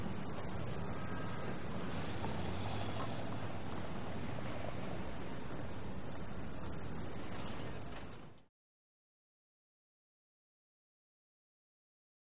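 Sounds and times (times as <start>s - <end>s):
traffic: 0.0s - 8.5s.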